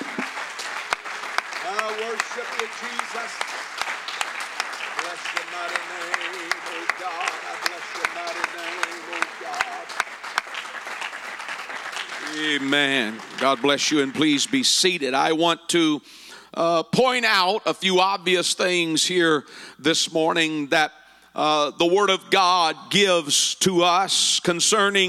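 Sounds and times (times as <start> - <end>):
audience applause: 0.0 - 15.1
speech: 2.3 - 3.5, 12.4 - 25.0.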